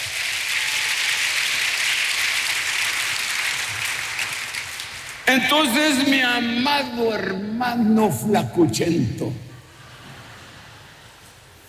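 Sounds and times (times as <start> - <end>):
audience applause: 0.0 - 5.5
speech: 5.3 - 9.5.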